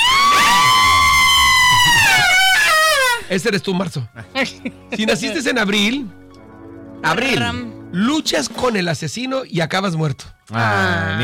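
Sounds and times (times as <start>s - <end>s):
high-pitched scream: 0.0s - 3.3s
speech: 3.3s - 6.2s, 7.0s - 11.2s
laughter: 4.2s - 5.5s.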